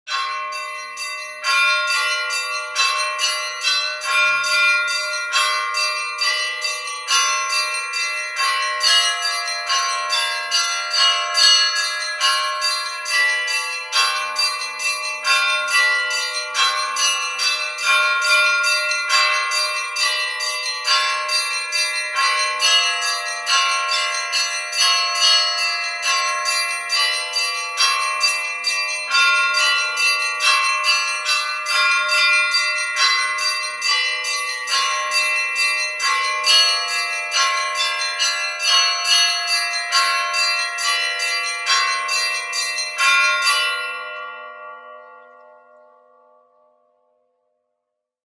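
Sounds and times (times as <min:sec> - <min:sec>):
Nikolaevsky church bell ringing: 0:00.1 - 0:46.5.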